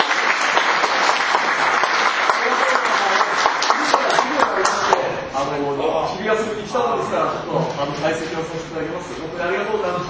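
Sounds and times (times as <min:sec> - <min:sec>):
audience applause: 0:00.0 - 0:05.1
speech: 0:06.1 - 0:10.0.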